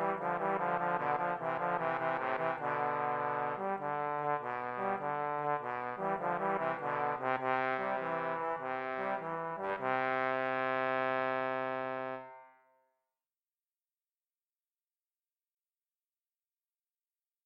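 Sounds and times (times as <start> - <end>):
trombone duet: 0.0 - 12.4.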